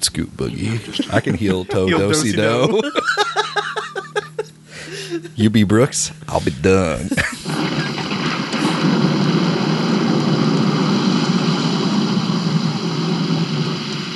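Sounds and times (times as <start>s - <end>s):
speech: 0.0s - 3.5s, 5.4s - 7.7s
laughter: 0.7s - 5.4s, 7.0s - 8.2s
thunder sound effect: 7.5s - 14.1s.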